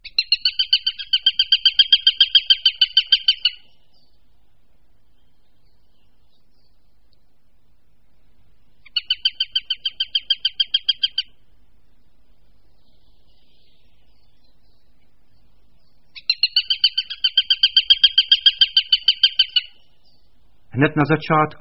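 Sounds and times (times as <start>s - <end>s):
Eurasian sparrowhawk kek calls: 0.0s - 4.1s, 8.7s - 11.4s, 16.1s - 20.0s
speech: 20.8s - 21.5s.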